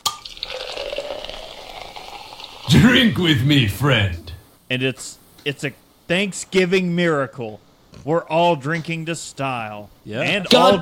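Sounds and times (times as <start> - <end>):
beer being poured into glasses: 0.0 - 4.1
speech: 2.8 - 10.7.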